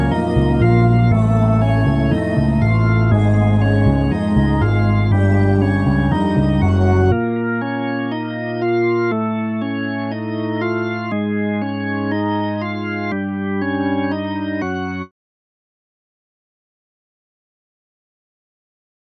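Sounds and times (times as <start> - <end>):
organ music: 0.0 - 15.1.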